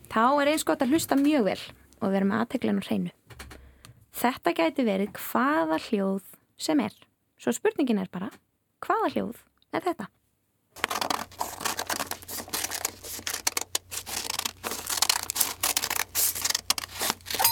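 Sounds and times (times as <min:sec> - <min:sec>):
speech: 0:00.2 - 0:03.3, 0:04.2 - 0:10.2
scissors cutting paper: 0:10.8 - 0:17.4.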